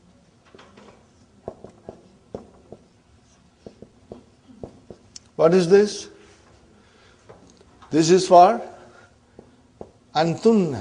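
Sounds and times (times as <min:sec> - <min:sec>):
pen scratching and tapping while writing by hand: 0:00.8 - 0:05.3
speech: 0:05.4 - 0:06.1, 0:07.9 - 0:08.7, 0:10.2 - 0:10.8.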